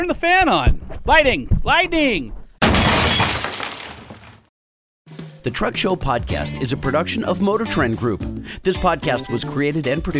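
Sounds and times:
speech: 0.0s - 2.4s, 5.4s - 10.1s
chair smashing through glass window: 2.6s - 4.4s.

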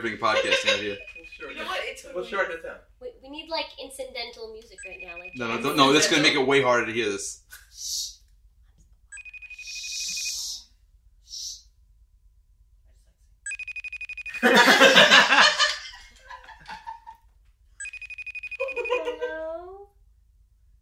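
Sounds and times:
people laughing: 0.0s - 1.9s, 14.3s - 17.2s, 18.6s - 19.6s
speech: 0.0s - 8.1s, 14.4s - 15.5s
outgoing phone call ringing: 0.5s - 1.9s, 4.8s - 6.2s, 9.2s - 10.4s, 13.5s - 14.4s, 17.8s - 19.2s.

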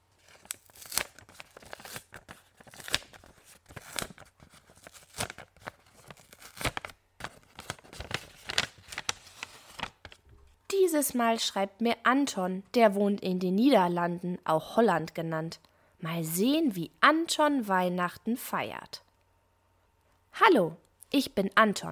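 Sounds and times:
paper letter envelope being torn open: 0.2s - 10.2s
speech: 11.0s - 19.0s, 20.5s - 21.8s.

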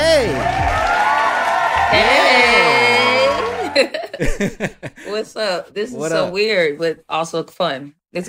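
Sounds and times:
people cheering: 0.0s - 4.3s
laughter: 1.8s - 5.3s
speech: 3.8s - 8.2s.

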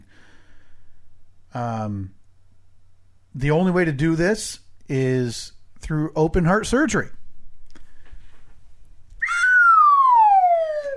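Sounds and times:
speech: 1.5s - 2.2s, 3.4s - 7.2s
descending slide whistle: 9.2s - 10.9s.

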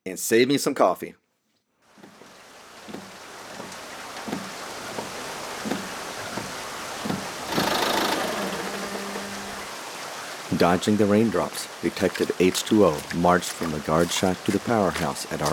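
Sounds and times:
speech: 0.0s - 1.2s, 10.6s - 15.5s
old Ford car engine starting: 7.0s - 10.6s.

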